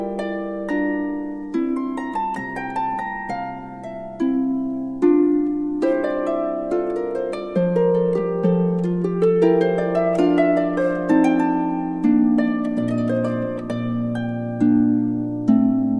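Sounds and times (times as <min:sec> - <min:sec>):
solo harp piece: 0:00.0 - 0:15.9.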